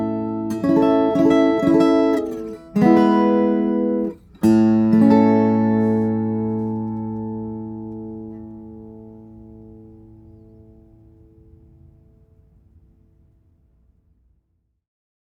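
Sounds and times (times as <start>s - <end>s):
guitars: 0.0s - 11.6s.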